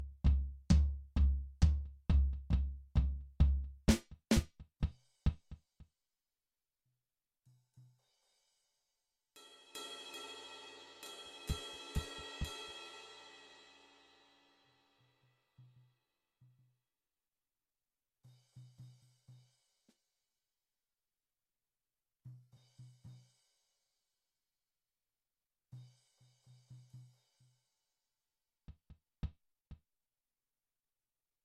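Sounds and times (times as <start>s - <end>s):
drum: 0.0s - 5.6s, 9.8s - 14.0s.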